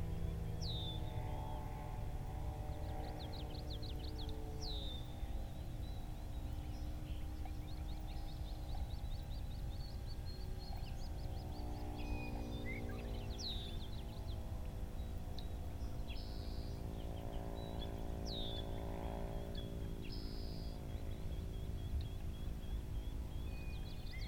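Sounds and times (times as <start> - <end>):
mid-afternoon birds: 0.0 - 24.2.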